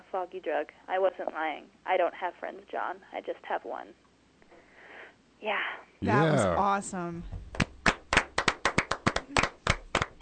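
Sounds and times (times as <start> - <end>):
speech: 0.1 - 4.1, 5.4 - 7.4
golf clap from a small live audience: 7.5 - 10.2.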